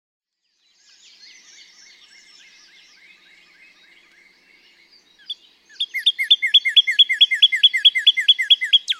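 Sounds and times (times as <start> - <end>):
Northern Cardinal song of rapid repeated down-slurred whistles: 0.4 - 8.9.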